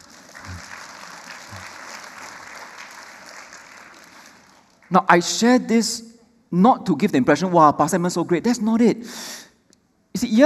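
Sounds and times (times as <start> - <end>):
audience applause: 0.0 - 4.9
speech: 4.9 - 9.5, 10.2 - 10.4.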